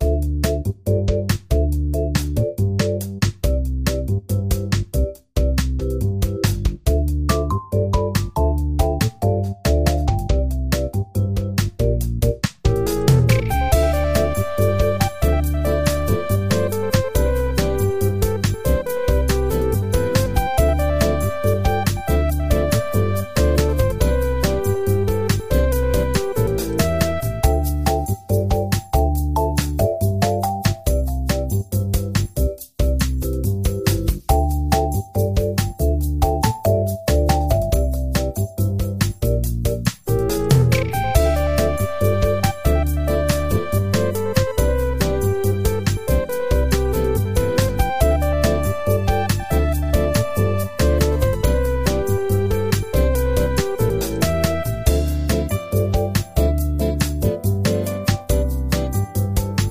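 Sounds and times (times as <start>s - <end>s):
tea time piano: 0.0s - 59.7s.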